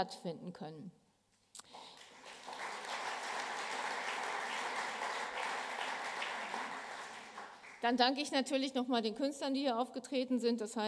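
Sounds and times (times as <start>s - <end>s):
speech: 0.0s - 1.0s, 7.8s - 10.8s
audience applause: 1.7s - 7.8s.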